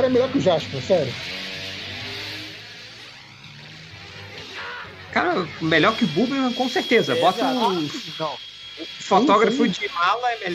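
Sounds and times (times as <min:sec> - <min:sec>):
speech: 0:00.0 - 0:01.4, 0:05.2 - 0:10.5
truck engine revving as the truck jumps off a bridge: 0:00.0 - 0:08.2.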